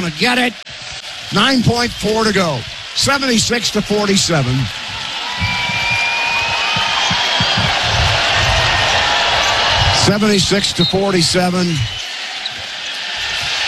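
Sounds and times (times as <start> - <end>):
speech: 0.0 - 0.6, 1.3 - 4.8, 10.1 - 12.0
crowd noise: 0.0 - 13.6
basketball dribbled on court in a college game: 5.4 - 9.9.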